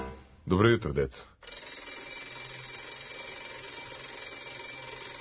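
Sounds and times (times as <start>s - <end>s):
speech: 0.5s - 1.5s
electric school bell ringing: 1.5s - 5.1s.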